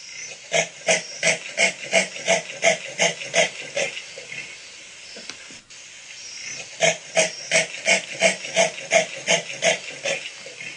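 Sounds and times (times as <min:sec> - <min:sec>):
leopard sawing roar: 0:00.2 - 0:04.6, 0:06.5 - 0:10.7.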